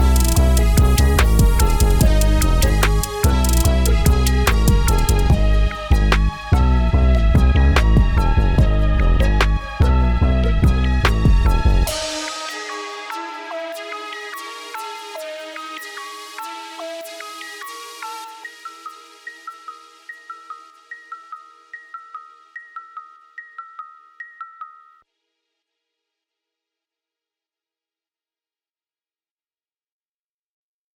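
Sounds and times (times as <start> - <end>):
trap beat: 0.0 - 15.8.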